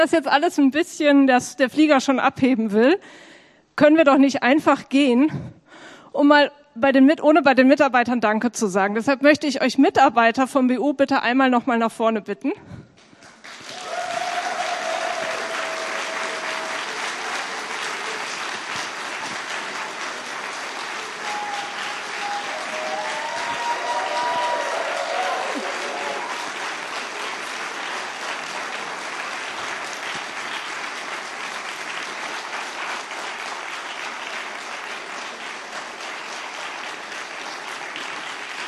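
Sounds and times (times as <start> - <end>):
speech: 0.0 - 12.8
audience applause: 13.3 - 38.6
whistles and cheers: 13.7 - 18.0, 21.1 - 26.5.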